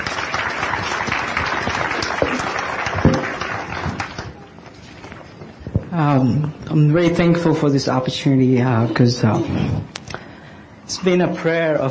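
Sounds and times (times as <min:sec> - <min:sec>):
audience applause welcoming a speaker to the stage: 0:00.0 - 0:04.5
speech: 0:06.2 - 0:10.0, 0:11.0 - 0:11.8.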